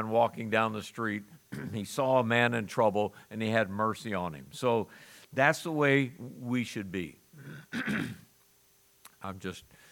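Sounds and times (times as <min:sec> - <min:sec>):
speech: 0:00.0 - 0:08.2, 0:09.2 - 0:09.8
harsh throaty cough: 0:01.5 - 0:01.8, 0:07.4 - 0:08.3.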